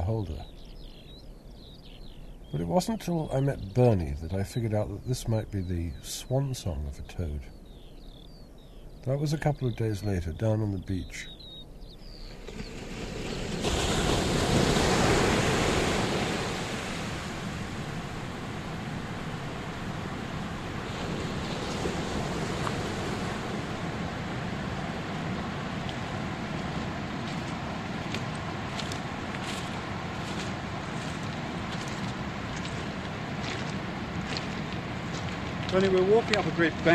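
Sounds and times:
speech: 0:00.1 - 0:00.7, 0:02.5 - 0:07.6, 0:09.0 - 0:11.4, 0:12.5 - 0:12.8, 0:35.8 - 0:36.9
surf waves on a beach: 0:12.1 - 0:36.9.

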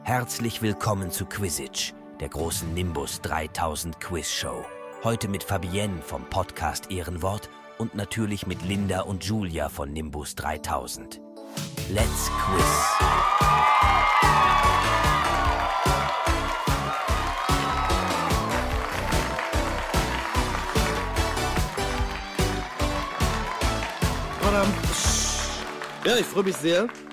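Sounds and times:
speech: 0:00.1 - 0:15.2, 0:26.0 - 0:27.1
studio audience cheering wildly: 0:12.0 - 0:26.5.

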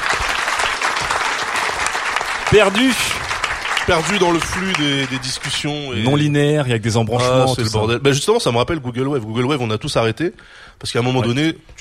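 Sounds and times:
audience applauding a participant in a discussion: 0:00.0 - 0:06.3
speech: 0:02.5 - 0:03.3, 0:03.9 - 0:11.7.

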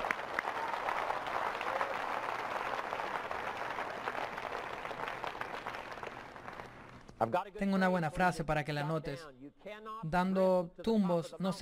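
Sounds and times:
audience applause: 0:00.0 - 0:07.0
speech: 0:07.2 - 0:11.6.

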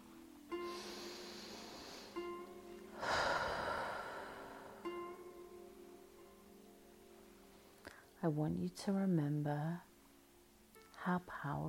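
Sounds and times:
slow deep breathing: 0:00.7 - 0:02.2, 0:02.9 - 0:05.0
speech: 0:08.2 - 0:09.9, 0:11.0 - 0:11.6.

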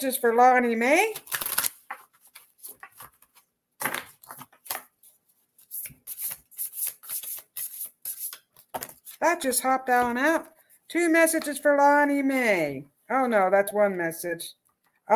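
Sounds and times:
speech: 0:00.0 - 0:01.4, 0:09.2 - 0:15.1
card deck shuffled and card pulled: 0:01.1 - 0:09.2.

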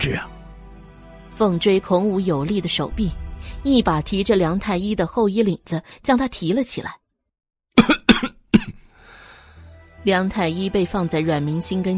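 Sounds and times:
speech: 0:00.0 - 0:00.3, 0:01.4 - 0:07.0, 0:10.0 - 0:11.9
violent coughing while bent over: 0:07.8 - 0:08.9.

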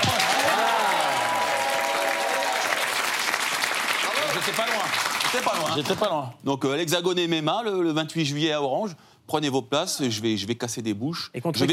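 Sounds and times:
audience applause: 0:00.0 - 0:06.1
speech: 0:04.5 - 0:11.7.

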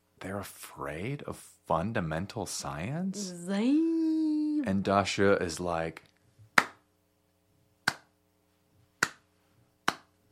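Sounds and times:
speech: 0:00.2 - 0:06.1
slow hand claps: 0:06.6 - 0:06.9, 0:07.8 - 0:08.2, 0:09.0 - 0:10.2.

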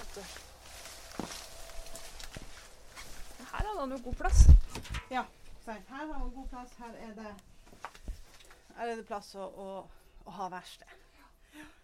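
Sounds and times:
faint footsteps of people walking inside a building in Vestberg: 0:00.0 - 0:08.8
speech: 0:03.8 - 0:07.8, 0:08.8 - 0:11.0.

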